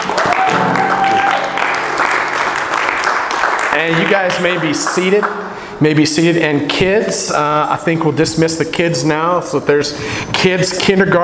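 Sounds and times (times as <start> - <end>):
audience applause: 0.0 - 5.4
speech: 3.8 - 11.2.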